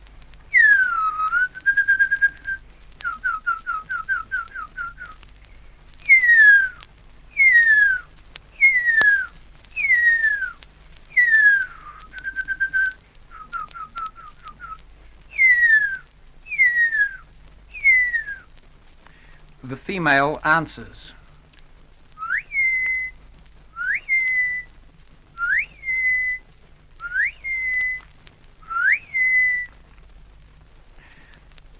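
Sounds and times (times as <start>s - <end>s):
person whistling hurya bird calls: 0.5s - 5.2s, 6.0s - 18.5s, 22.2s - 23.2s, 23.8s - 24.7s, 25.4s - 26.4s, 27.0s - 28.0s, 28.6s - 29.8s
speech: 19.9s - 21.2s.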